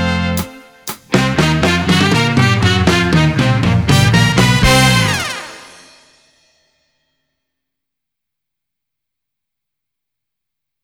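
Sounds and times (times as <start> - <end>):
concert backing track music: 0.0 - 6.0.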